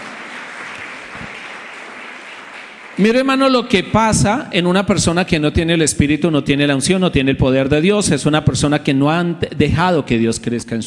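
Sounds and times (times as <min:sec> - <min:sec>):
audience applause: 0:00.0 - 0:03.6
speech: 0:03.0 - 0:10.8.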